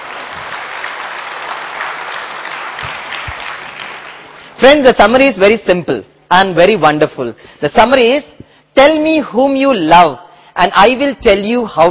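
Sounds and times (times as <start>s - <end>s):
audience applause: 0.0s - 4.6s
speech: 4.6s - 11.8s.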